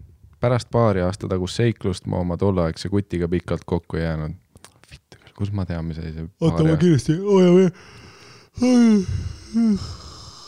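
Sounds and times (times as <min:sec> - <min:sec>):
speech: 0:00.4 - 0:04.4, 0:05.4 - 0:10.1
person yawning: 0:07.2 - 0:10.4.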